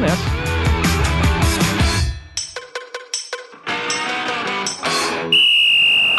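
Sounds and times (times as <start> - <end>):
music: 0.0 - 6.1
punchy percussive hits: 1.8 - 5.3
referee's whistle blast: 5.3 - 6.1.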